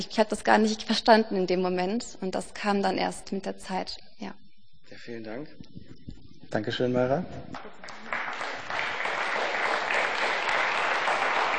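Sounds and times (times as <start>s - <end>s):
speech: 0.0s - 5.9s, 6.5s - 8.0s
audience applause: 7.6s - 11.5s.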